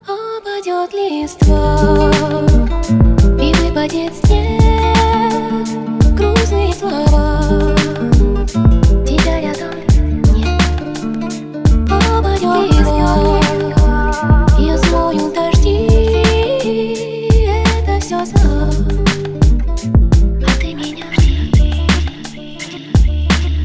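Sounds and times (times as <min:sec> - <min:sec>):
guitar remix: 0:00.0 - 0:23.6.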